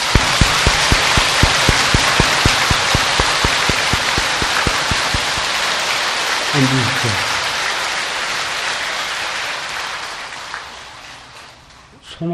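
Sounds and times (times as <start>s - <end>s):
audience applause: 0.0s - 11.9s
speech: 6.6s - 7.3s, 12.2s - 12.3s.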